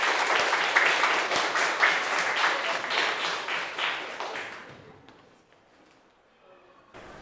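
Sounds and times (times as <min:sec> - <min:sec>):
audience applause: 0:00.0 - 0:05.1.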